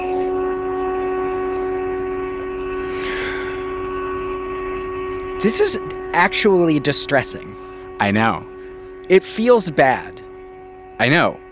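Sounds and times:
storm sirens: 0.0 - 11.5
breathy rush of noise: 2.7 - 3.9
speech: 5.4 - 8.5, 9.1 - 10.2, 11.0 - 11.4.

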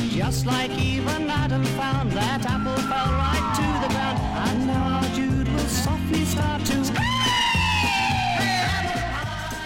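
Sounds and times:
repeating low bass pattern: 0.1 - 7.2
person singing a long wavering note: 0.2 - 9.6
speech: 0.3 - 3.3.

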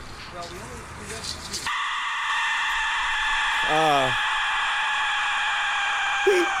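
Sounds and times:
Aztec death whistle: 1.7 - 6.5.

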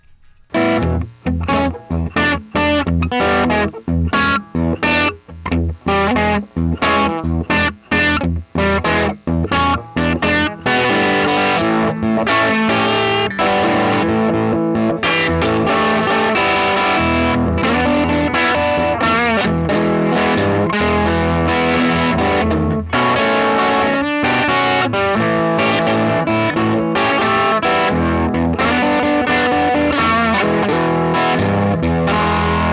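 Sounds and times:
electric guitar with gritty effected tone: 0.0 - 32.7.

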